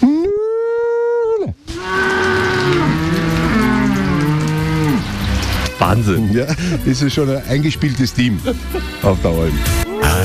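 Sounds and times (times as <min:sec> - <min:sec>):
overlapping wavering moos: 0:00.0 - 0:05.3
speech: 0:05.9 - 0:10.2.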